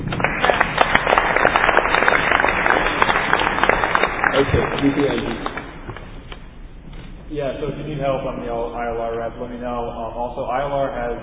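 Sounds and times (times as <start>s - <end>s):
audience clapping: 0.0s - 6.4s
speech: 4.8s - 5.6s, 7.3s - 11.2s.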